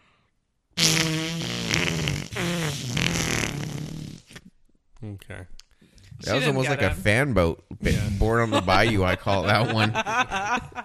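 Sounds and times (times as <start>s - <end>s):
fart sound imitated with the mouth and hands: 0.8s - 4.5s
speech: 5.0s - 5.6s, 6.2s - 10.8s
laughter: 7.9s - 10.8s.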